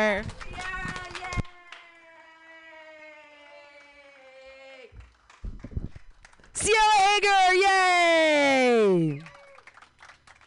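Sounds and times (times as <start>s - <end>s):
speech: 0.0s - 0.8s, 7.2s - 9.3s
audience clapping: 0.0s - 2.3s, 3.0s - 7.1s, 8.8s - 10.4s.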